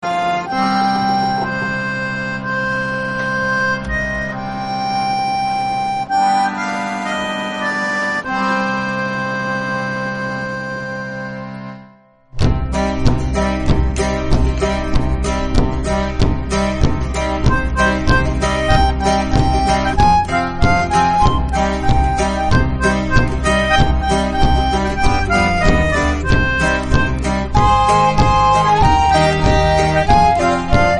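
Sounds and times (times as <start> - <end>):
instrumental sea shanty medley background music: 0.0 - 30.9.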